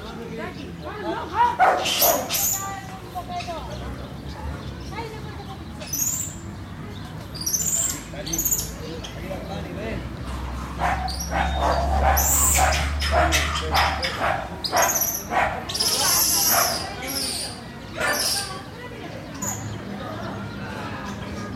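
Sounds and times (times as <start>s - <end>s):
traffic: 0.0s - 21.5s
monkeys in small zoo in Spain when teased: 1.4s - 2.8s, 5.8s - 6.5s, 7.4s - 8.8s, 10.8s - 18.7s
dog barking: 1.6s - 2.3s, 10.8s - 16.9s, 18.0s - 18.3s.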